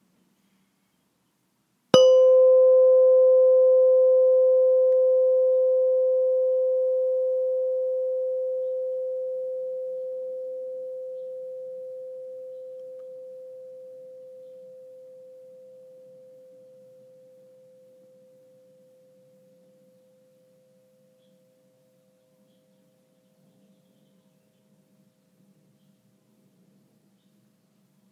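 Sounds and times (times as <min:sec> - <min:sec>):
meditation bell ringing: 0:02.0 - 0:17.8.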